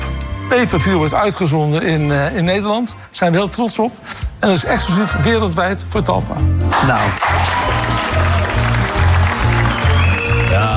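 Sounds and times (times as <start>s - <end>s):
speech: 0.5s - 9.0s
audience applause for a figure being honoured: 6.7s - 10.7s.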